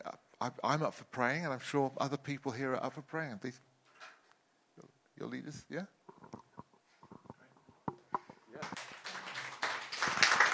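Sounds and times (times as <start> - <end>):
speech: 0.4 - 3.7, 5.2 - 6.0
audience clapping: 8.5 - 10.5.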